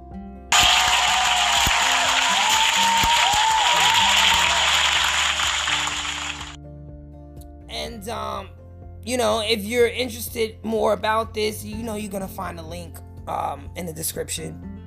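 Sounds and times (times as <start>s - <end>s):
applause sound effect: 0.5s - 6.6s
speech: 9.1s - 14.8s.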